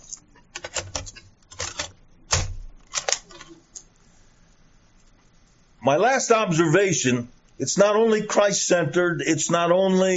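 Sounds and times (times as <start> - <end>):
plastic clicks of a cassette tape being turned over: 0.1 - 3.6
speech: 5.8 - 10.1.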